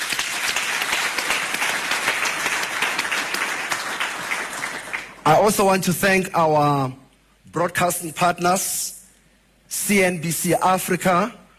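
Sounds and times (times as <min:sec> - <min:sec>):
audience applause: 0:00.0 - 0:05.2
speech: 0:05.3 - 0:07.0, 0:07.6 - 0:09.0, 0:09.7 - 0:11.4.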